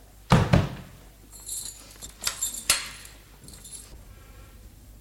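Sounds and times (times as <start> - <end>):
heavy door thudding shut: 0.3 - 0.9
metallic keys jangling and clicking in a lock: 1.3 - 3.9.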